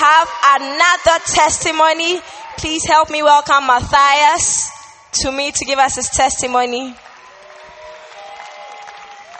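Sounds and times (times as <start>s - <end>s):
speech: 0.3s - 7.1s
audience applause at a church gathering: 7.0s - 9.3s.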